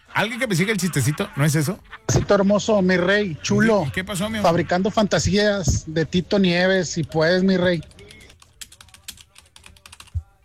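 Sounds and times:
speech: 0.2s - 7.9s
typing on a computer keyboard: 7.0s - 10.4s.

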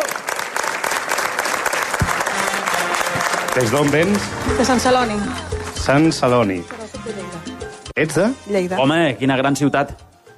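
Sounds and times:
applause: 0.0s - 4.8s
speech: 3.6s - 6.8s, 8.0s - 10.0s.

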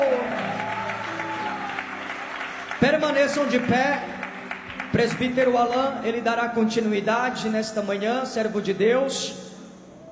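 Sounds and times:
congregation clapping in praise at a church service: 0.0s - 6.2s
speech: 2.8s - 4.1s, 4.9s - 9.4s.

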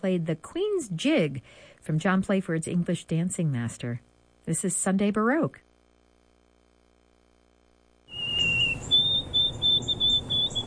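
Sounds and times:
speech: 0.0s - 5.6s
white-throated sparrow singing: 8.1s - 10.6s.

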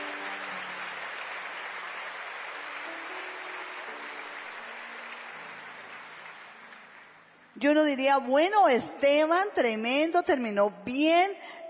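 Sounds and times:
audience applauding: 0.0s - 7.5s
speech: 7.6s - 11.6s.

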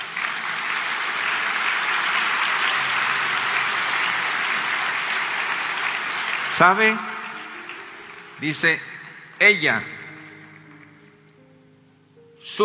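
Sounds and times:
applause: 0.0s - 11.1s
speech: 6.6s - 7.1s, 8.4s - 10.0s, 12.5s - 12.6s.

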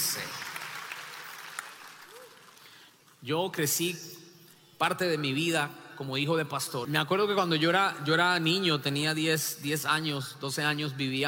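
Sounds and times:
church congregation applauding: 0.0s - 3.1s
speech: 3.2s - 4.2s, 4.8s - 11.2s.

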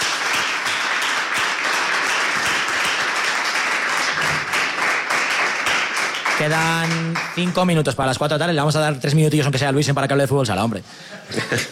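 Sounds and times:
applause: 0.0s - 8.0s
speech: 6.4s - 11.6s
laughter: 11.0s - 11.6s.

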